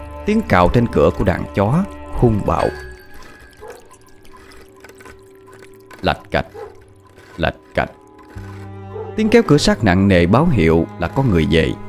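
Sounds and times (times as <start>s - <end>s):
speech: 0.2s - 2.9s, 6.0s - 6.6s, 7.4s - 8.0s, 9.2s - 11.8s
running water: 0.7s - 8.7s.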